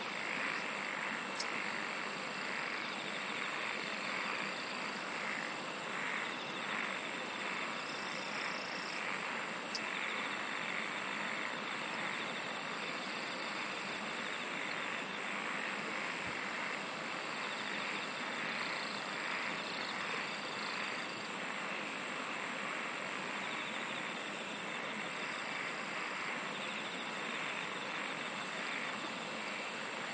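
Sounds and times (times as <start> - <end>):
insect chorus: 0.0 - 30.1.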